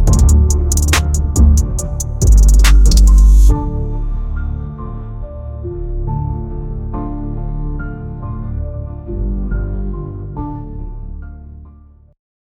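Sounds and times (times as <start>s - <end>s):
hard dark trap beat: 0.0s - 3.6s.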